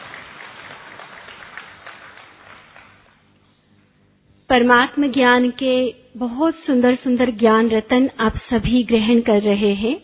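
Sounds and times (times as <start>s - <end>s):
crowd clapping to welcome a speaker at a spiritual gathering: 0.0s - 3.2s
speech: 4.5s - 10.0s.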